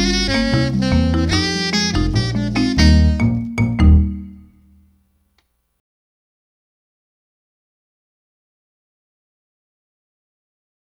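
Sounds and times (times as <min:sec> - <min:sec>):
jazz keyboard: 0:00.0 - 0:04.8.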